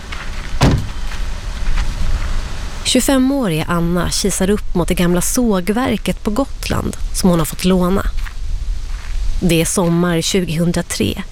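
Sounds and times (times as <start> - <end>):
low steady outdoor rumble: 0.0 - 11.2
solid thump of a car door or hatch: 0.6 - 1.0
speech: 2.9 - 8.2, 9.4 - 11.2.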